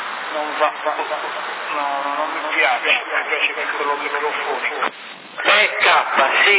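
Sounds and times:
CB radio voice with echo effect: 0:00.3 - 0:06.5
speech: 0:00.4 - 0:06.5.

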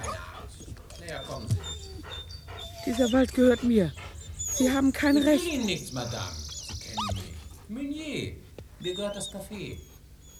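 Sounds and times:
human voices: 0:00.0 - 0:07.6
dogs barking: 0:00.0 - 0:10.3
speech: 0:02.8 - 0:04.0, 0:04.6 - 0:06.4, 0:07.7 - 0:09.9.

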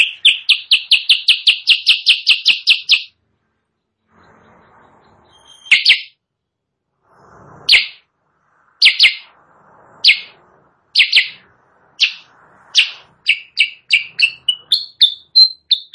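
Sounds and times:
sooty-headed bulbul chirping, training song for caged birds: 0:00.0 - 0:03.2, 0:05.2 - 0:06.2, 0:07.7 - 0:08.0, 0:08.8 - 0:09.3, 0:10.0 - 0:10.4, 0:11.0 - 0:15.9.

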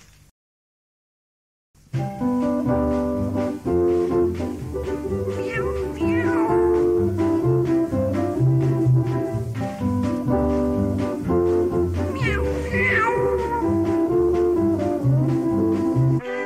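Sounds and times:
loud instrumental music: 0:01.8 - 0:16.4
cat meowing: 0:05.3 - 0:07.0, 0:12.0 - 0:14.2, 0:16.2 - 0:16.4.

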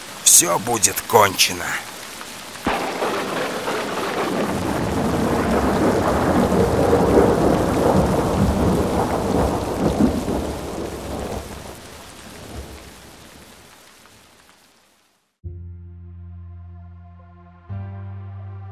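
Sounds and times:
pouring rain: 0:00.0 - 0:15.4
speech: 0:00.4 - 0:02.0
thunder: 0:02.6 - 0:12.9.

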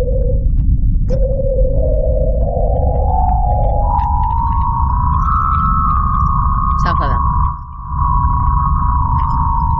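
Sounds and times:
NASA-captured sound of planet Venus: 0:00.0 - 0:09.7.

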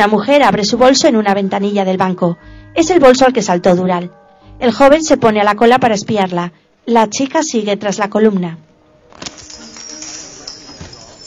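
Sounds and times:
speech: 0:00.0 - 0:09.4
coins clinking inside a bank: 0:09.1 - 0:11.2.

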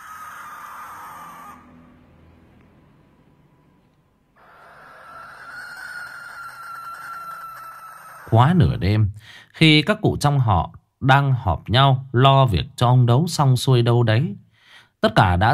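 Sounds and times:
barn owl screeching: 0:00.0 - 0:02.0, 0:04.4 - 0:08.4
speech: 0:08.3 - 0:14.4, 0:15.0 - 0:15.5.

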